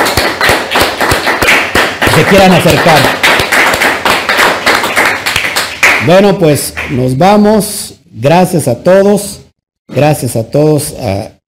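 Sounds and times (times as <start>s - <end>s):
audience applause: 0.0s - 6.1s
speech: 2.2s - 3.2s, 6.0s - 11.4s.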